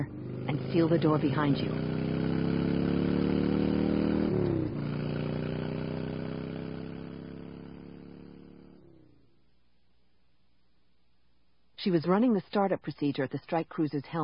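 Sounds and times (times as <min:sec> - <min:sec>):
speech: 0:00.0 - 0:02.0, 0:11.8 - 0:14.2
speeder bike engine revving forward: 0:00.0 - 0:09.0.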